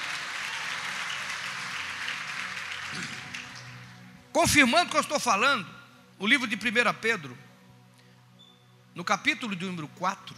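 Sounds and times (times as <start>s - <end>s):
audience applauding: 0.0s - 4.0s
speech: 2.9s - 3.2s, 4.4s - 7.4s, 9.0s - 10.3s.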